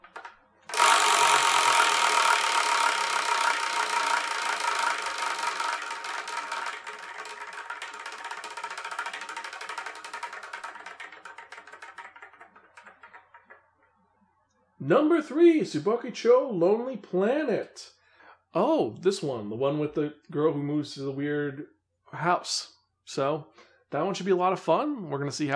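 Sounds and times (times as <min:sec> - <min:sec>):
spinning prize wheel ratcheting clicks: 0:00.0 - 0:13.7
speech: 0:14.9 - 0:18.0, 0:18.6 - 0:25.5.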